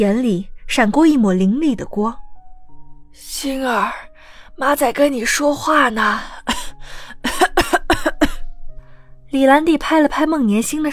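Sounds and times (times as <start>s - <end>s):
speech: 0.0s - 2.2s, 3.1s - 7.4s, 9.3s - 10.9s
coughing: 6.4s - 8.5s.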